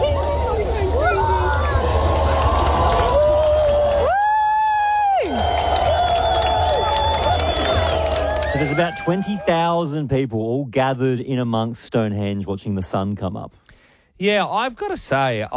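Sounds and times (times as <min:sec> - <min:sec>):
crowd clapping at sunrise: 0:00.0 - 0:09.8
speech: 0:08.8 - 0:13.6, 0:14.2 - 0:15.5.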